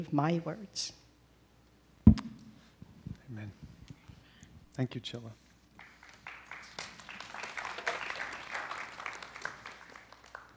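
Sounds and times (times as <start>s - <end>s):
speech: 0.0s - 1.0s, 3.3s - 3.7s, 4.8s - 5.4s
audience applauding: 5.8s - 10.5s.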